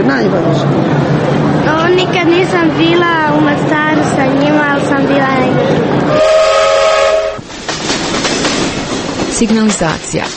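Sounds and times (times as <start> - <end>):
speech: 0.0 - 1.0, 1.9 - 6.4, 9.4 - 10.3
train travelling to Mostar: 0.0 - 10.3
train horn tone: 6.1 - 7.4.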